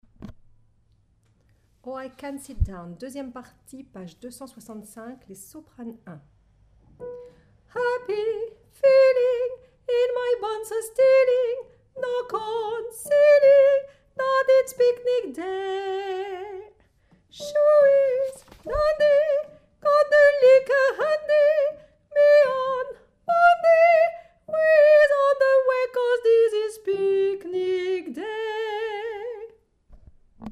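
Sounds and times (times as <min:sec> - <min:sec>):
soprano singing: 0:07.1 - 0:29.6.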